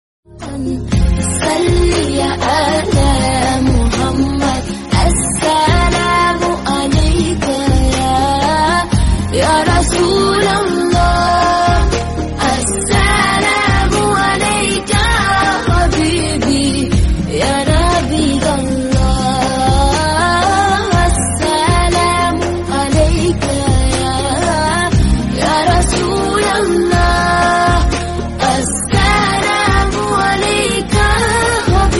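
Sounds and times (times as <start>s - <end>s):
islamic song: 0.3s - 31.9s.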